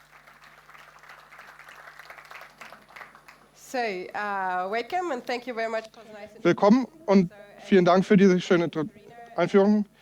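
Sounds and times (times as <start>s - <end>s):
audience applause: 0.0s - 3.4s
speech: 3.7s - 9.9s.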